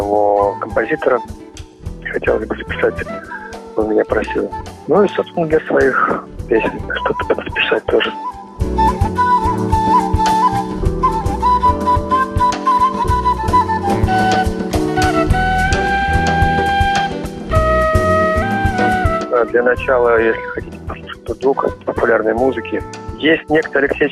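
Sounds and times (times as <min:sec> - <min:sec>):
steady full musical accompaniment: 0:00.0 - 0:24.1
speech: 0:00.1 - 0:01.4, 0:02.1 - 0:08.9, 0:19.4 - 0:20.6, 0:21.4 - 0:24.1
Armenian duduk playing a slow mournful melody: 0:08.2 - 0:20.6.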